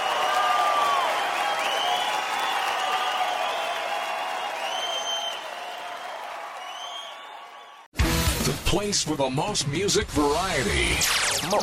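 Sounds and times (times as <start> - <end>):
comedy show audience in Santa Rosa clapping: 0.0 - 7.9
high whistle-like cheers: 0.0 - 7.9
speech: 8.7 - 11.6.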